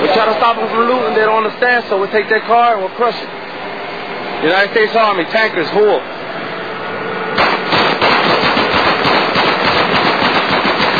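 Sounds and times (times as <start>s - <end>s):
speech: 0.2s - 3.4s, 4.4s - 6.1s
gunfire shooting up a vehicle: 7.4s - 10.9s.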